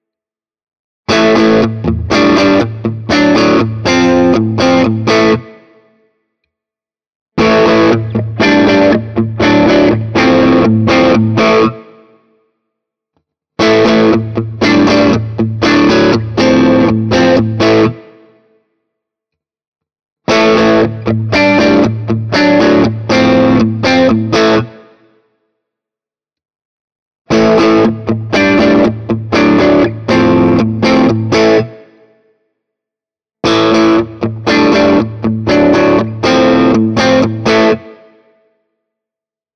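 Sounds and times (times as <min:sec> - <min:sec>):
Ibanez AR520HFM LBB electric guitar crunch riff in all pickup positions: 0:01.1 - 0:05.6, 0:07.4 - 0:12.0, 0:13.6 - 0:18.2, 0:20.3 - 0:24.9, 0:27.3 - 0:31.9, 0:33.5 - 0:38.1.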